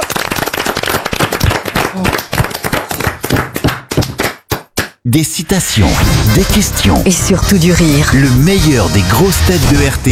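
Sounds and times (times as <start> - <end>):
audience applause: 0.0 - 4.4
speech: 2.0 - 2.2, 5.1 - 10.1.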